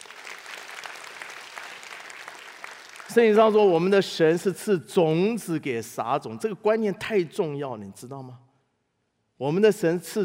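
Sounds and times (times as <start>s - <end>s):
audience applause: 0.0s - 3.2s
speech: 3.1s - 8.4s, 9.4s - 10.2s.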